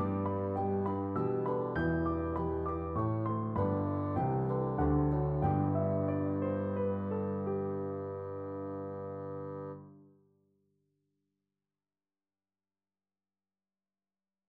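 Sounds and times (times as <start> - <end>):
bassoon in a trio: 0.0 - 10.0.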